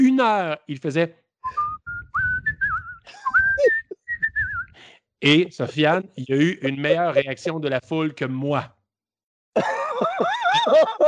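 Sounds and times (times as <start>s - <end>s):
speech: 0.2s - 1.2s, 5.2s - 8.8s, 9.6s - 11.0s
person whistling a bright pop tune: 1.4s - 4.8s
laughter: 3.0s - 4.0s, 9.6s - 11.0s.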